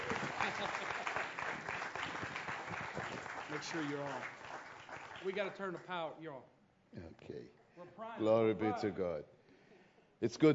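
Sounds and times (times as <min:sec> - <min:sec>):
audience applause welcoming a visiting pastor from Enfield England: 0:00.0 - 0:05.6
speech: 0:03.6 - 0:04.4, 0:05.2 - 0:09.4, 0:10.2 - 0:10.5.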